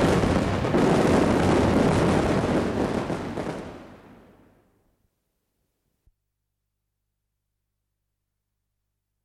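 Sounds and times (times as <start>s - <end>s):
fireworks: 0.0s - 4.7s.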